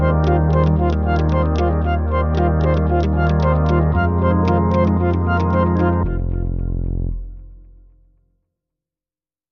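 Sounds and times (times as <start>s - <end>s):
healthy success patient underscore music: 0.0s - 7.5s.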